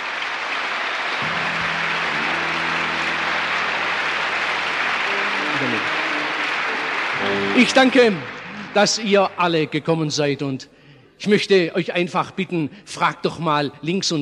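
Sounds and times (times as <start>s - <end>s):
audience applause: 0.0s - 9.9s
speech: 7.6s - 14.2s.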